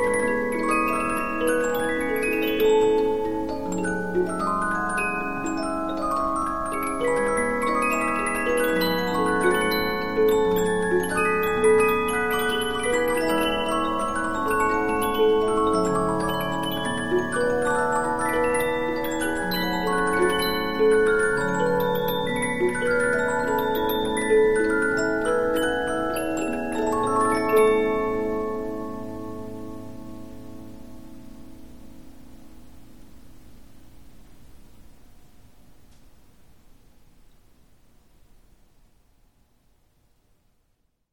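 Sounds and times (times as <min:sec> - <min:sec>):
Polyphon 15-inch disc music box playing: 0:00.0 - 0:30.5.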